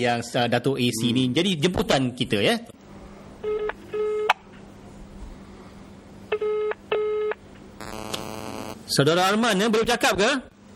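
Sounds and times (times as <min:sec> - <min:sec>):
speech: 0:00.0 - 0:02.8, 0:09.0 - 0:10.5
buzzing electronic telephone ring tones: 0:06.4 - 0:08.8
rapid electronic tones: 0:07.8 - 0:08.8.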